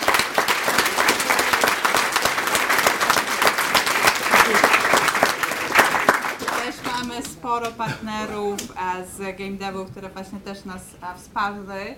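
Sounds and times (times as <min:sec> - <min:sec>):
applause from a crowd: 0:00.0 - 0:07.4
speech: 0:07.4 - 0:11.9.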